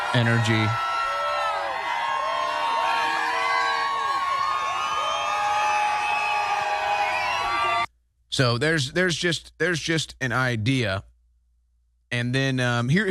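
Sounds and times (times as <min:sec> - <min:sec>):
crowd cheering at rally: 0:00.0 - 0:07.9
speech: 0:00.1 - 0:00.9, 0:08.4 - 0:11.1, 0:12.1 - 0:13.0.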